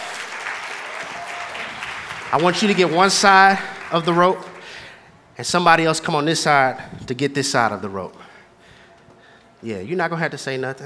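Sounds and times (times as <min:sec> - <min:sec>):
audience applause for volunteers: 0:00.0 - 0:04.9
speech: 0:02.3 - 0:04.5, 0:05.4 - 0:08.3, 0:09.6 - 0:10.8.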